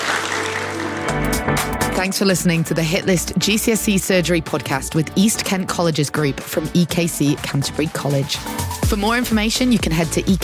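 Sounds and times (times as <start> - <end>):
round of applause for students: 0.0 - 1.4
speech: 2.0 - 10.4.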